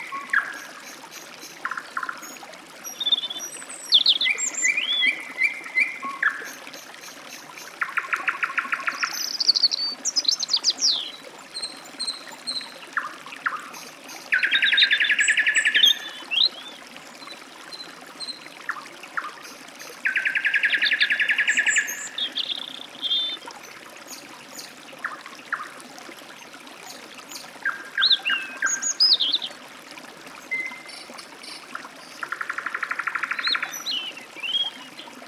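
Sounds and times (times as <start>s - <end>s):
forest stream: 0.0s - 35.2s
robin singing: 2.9s - 6.6s, 7.8s - 12.7s, 14.3s - 16.8s, 20.0s - 23.4s, 27.3s - 29.5s, 30.5s - 35.2s.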